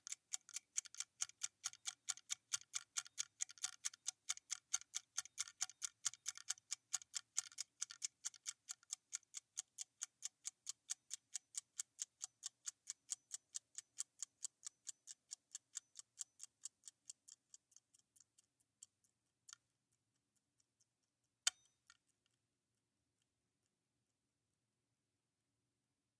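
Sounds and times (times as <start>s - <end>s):
egg timer: 0.0s - 20.9s.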